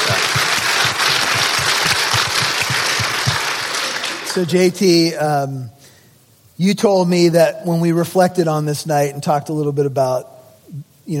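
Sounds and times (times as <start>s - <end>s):
audience applause: 0.0s - 4.5s
speech: 4.4s - 5.8s, 6.6s - 11.1s.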